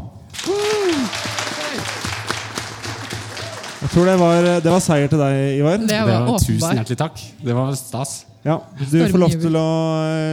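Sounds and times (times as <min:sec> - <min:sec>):
audience applause: 0:00.3 - 0:05.1
whoops and cheering voices: 0:00.4 - 0:01.8
speech: 0:03.9 - 0:10.3.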